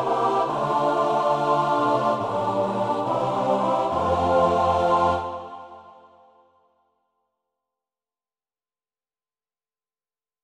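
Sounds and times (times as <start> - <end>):
choir singing: 0.0 - 6.5.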